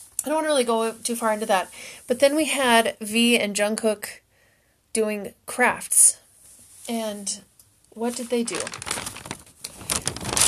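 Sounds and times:
speech: 0:00.2 - 0:04.2, 0:05.0 - 0:06.2, 0:06.9 - 0:09.0
paper crinkling and rattling: 0:08.0 - 0:10.4.

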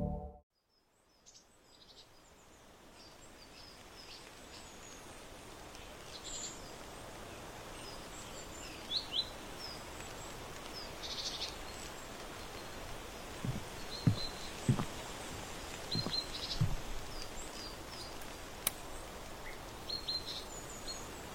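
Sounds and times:
soft autumn outdoor hiss from a porch: 0:00.6 - 0:21.3
light knocks and clicks: 0:13.4 - 0:14.9, 0:16.0 - 0:16.9.

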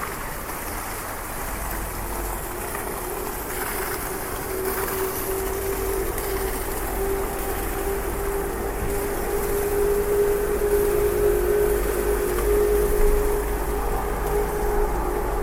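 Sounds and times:
rain falling on a street: 0:00.0 - 0:15.4
steady humming tone: 0:00.0 - 0:15.4
low rumble: 0:01.4 - 0:15.4.

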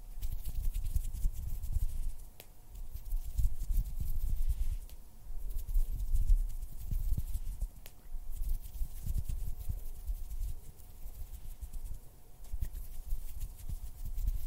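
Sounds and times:
hand sounds and finger fluttering: 0:00.0 - 0:14.4
thin steady hum: 0:00.0 - 0:14.4.

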